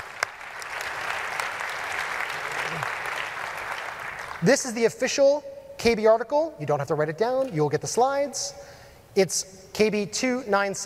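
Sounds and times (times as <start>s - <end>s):
audience applause: 0.0s - 4.4s
speech: 4.4s - 10.8s.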